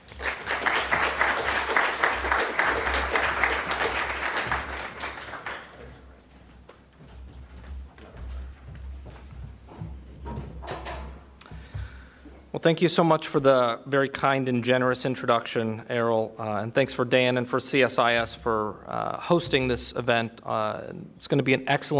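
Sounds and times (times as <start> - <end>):
audience applauding a speaker at a policy discussion event: 0.0 - 6.1
speech: 12.6 - 21.9.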